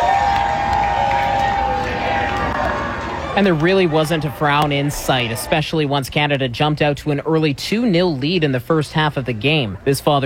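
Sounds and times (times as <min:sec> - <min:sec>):
fans cheering outside BC Place stadium: 0:00.0 - 0:06.1
speech: 0:03.4 - 0:10.2.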